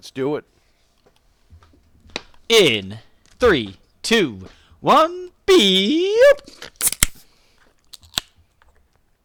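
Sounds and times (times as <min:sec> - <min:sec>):
speech: 0:00.0 - 0:00.6, 0:02.5 - 0:06.7
beer cans being cracked open: 0:06.4 - 0:08.8.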